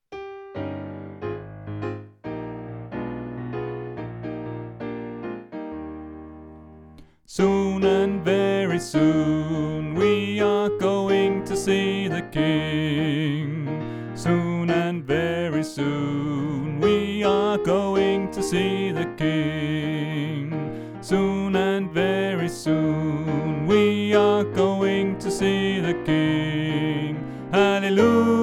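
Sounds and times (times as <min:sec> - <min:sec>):
soprano voice: 0:07.3 - 0:28.4.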